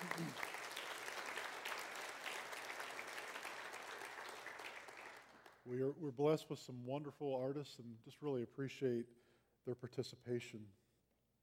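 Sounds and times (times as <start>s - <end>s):
audience applause: 0.0s - 5.6s
speech: 5.6s - 10.8s.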